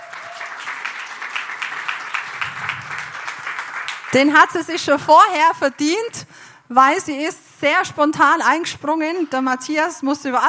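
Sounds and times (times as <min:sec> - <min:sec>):
audience applause: 0:00.0 - 0:04.2
speech: 0:04.1 - 0:10.4.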